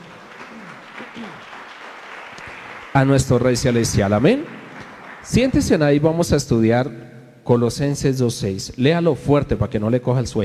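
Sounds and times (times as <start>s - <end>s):
church congregation applauding: 0.0s - 6.0s
speech: 1.2s - 1.6s, 2.9s - 4.6s, 5.3s - 10.4s.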